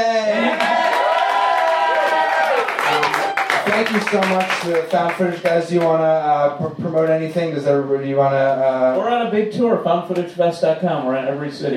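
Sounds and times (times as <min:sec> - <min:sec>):
crowd yelling and cheering: 0:00.0 - 0:04.8
speech: 0:03.8 - 0:11.7.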